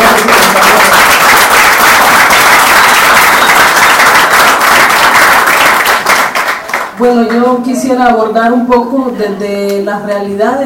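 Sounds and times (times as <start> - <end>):
audience applause: 0.0 - 7.0
speech: 7.0 - 10.6.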